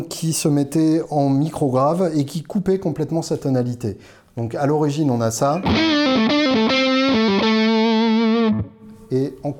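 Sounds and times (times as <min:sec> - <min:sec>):
speech: 0:00.0 - 0:06.8, 0:09.1 - 0:09.5
distorted electric guitar with saturated tone: 0:05.6 - 0:09.0.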